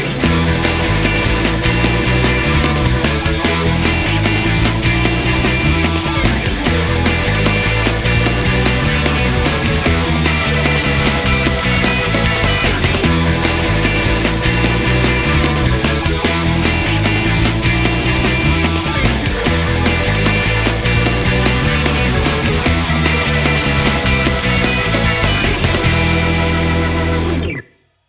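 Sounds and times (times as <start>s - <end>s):
car sound loop: 0.2s - 27.5s.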